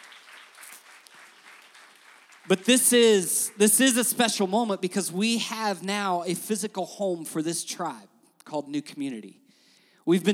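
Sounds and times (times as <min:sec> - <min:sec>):
round of applause: 0:00.0 - 0:04.0
speech: 0:02.4 - 0:09.4, 0:10.0 - 0:10.3.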